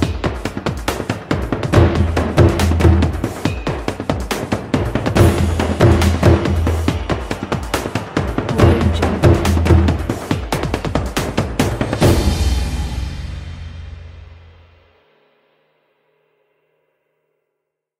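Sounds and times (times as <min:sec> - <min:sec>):
exotic war drum instrumental background music: 0:00.0 - 0:14.4.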